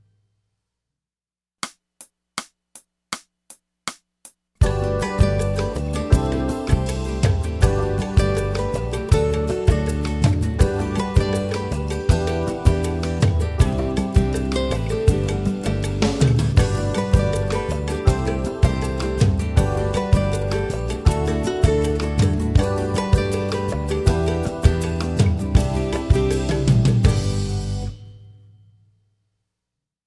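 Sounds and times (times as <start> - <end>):
strings in G major: 4.6 - 28.1.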